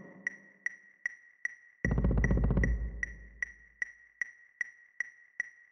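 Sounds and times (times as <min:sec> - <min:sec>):
sequenced trip bass: 0:01.8 - 0:03.4.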